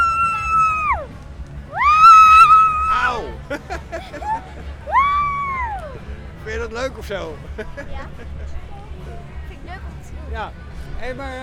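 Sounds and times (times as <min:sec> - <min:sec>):
child screaming while swinging on a swing: 0:00.0 - 0:01.1, 0:01.7 - 0:03.1, 0:04.9 - 0:05.9
laughter: 0:01.8 - 0:06.1, 0:07.2 - 0:08.7
speech: 0:06.8 - 0:08.6, 0:10.3 - 0:11.4.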